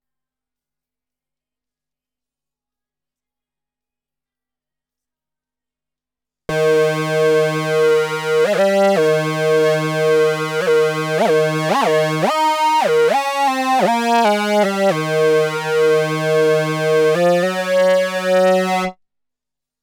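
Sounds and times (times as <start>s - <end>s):
Moog synthesizer: 6.5s - 18.9s.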